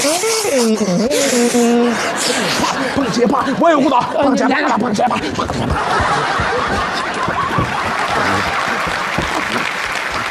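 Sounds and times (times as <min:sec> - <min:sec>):
speech: 0:00.0 - 0:07.8
crowd chuckling and laughing: 0:01.4 - 0:10.3
audience applause for a two-person stage act: 0:05.4 - 0:10.3.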